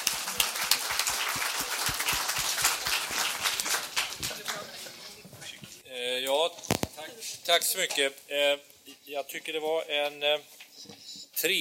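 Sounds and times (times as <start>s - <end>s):
audience applause: 0.0s - 5.0s
speech: 7.5s - 10.5s, 11.4s - 11.5s.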